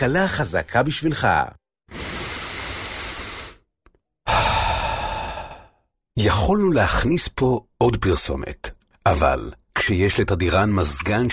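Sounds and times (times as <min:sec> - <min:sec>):
speech: 0:00.0 - 0:02.0, 0:06.2 - 0:11.3
deep breath in: 0:01.9 - 0:03.7, 0:04.3 - 0:05.9.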